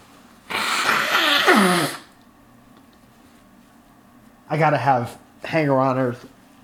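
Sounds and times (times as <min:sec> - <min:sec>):
person blowing their nose: 0:00.5 - 0:02.2
speech: 0:04.5 - 0:06.4.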